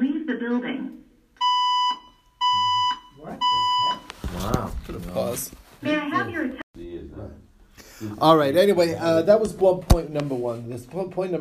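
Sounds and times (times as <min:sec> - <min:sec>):
speech: 0:00.3 - 0:01.0, 0:05.3 - 0:06.6, 0:08.2 - 0:11.3
building fire alarm during fire drill: 0:01.4 - 0:04.1.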